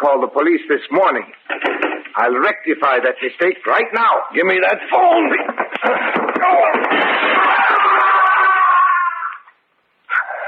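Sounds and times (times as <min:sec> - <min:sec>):
speech: 0:00.1 - 0:06.6
man crashing through a window: 0:04.9 - 0:08.8.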